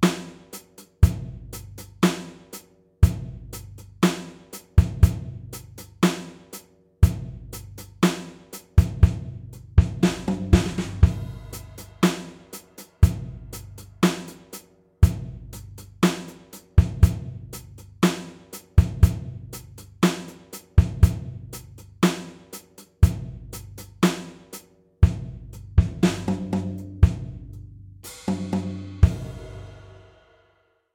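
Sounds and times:
drum beat at 120 BPM: 0.0 - 29.8.

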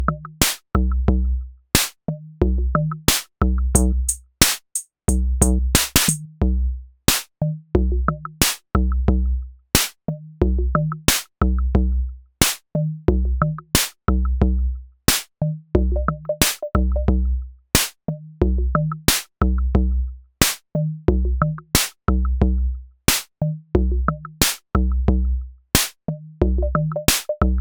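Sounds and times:
drums at 90 BPM: 0.0 - 27.6.

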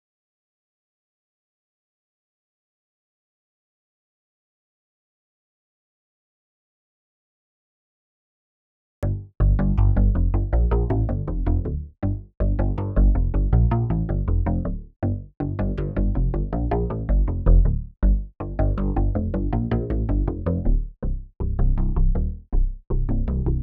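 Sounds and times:
bass: 9.0 - 23.6.

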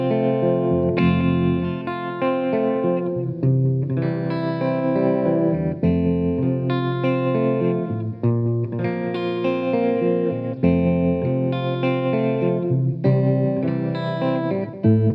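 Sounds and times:
tremolo guitar: 0.0 - 15.1.

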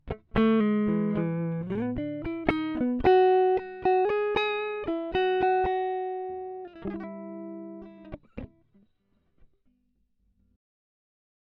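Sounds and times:
dry guitar sketch: 0.1 - 8.4.

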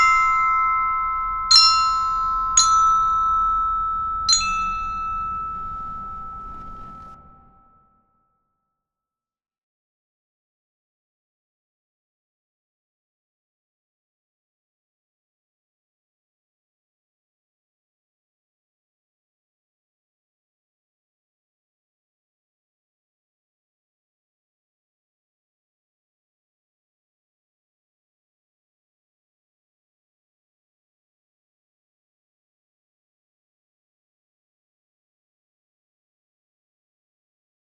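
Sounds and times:
glockenspiel playing an etude: 0.0 - 7.0.

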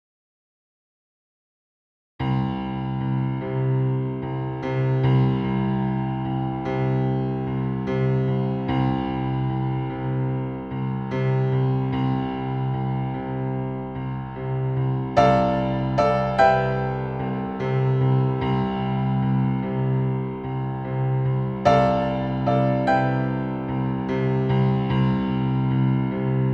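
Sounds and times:
forceful piano: 2.2 - 26.5.

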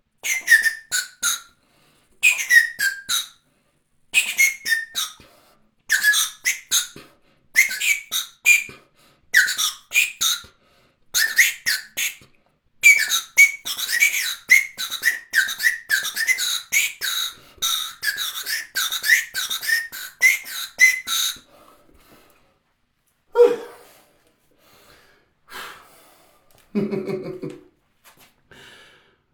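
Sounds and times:
whistle pops: 0.2 - 1.5, 2.2 - 3.4, 4.2 - 5.3, 5.9 - 7.0, 7.6 - 8.8, 9.4 - 10.5, 11.2 - 12.2, 12.8 - 21.5.

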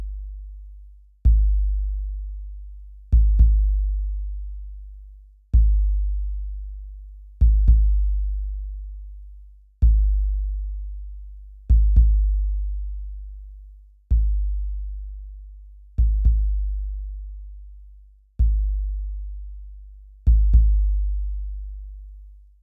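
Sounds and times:
mini drums: 1.3 - 1.8, 3.1 - 3.9, 5.6 - 6.1, 7.4 - 8.3, 9.8 - 10.5, 11.7 - 12.5, 14.1 - 14.6, 16.0 - 16.7, 18.4 - 18.8, 20.3 - 21.4.

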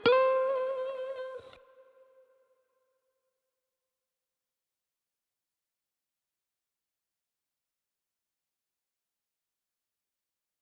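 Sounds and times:
guitar riffs: 0.0 - 2.2.

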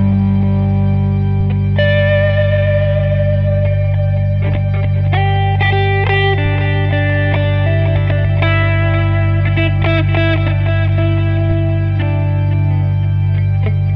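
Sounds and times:
guitar improvisation: 0.0 - 13.9.

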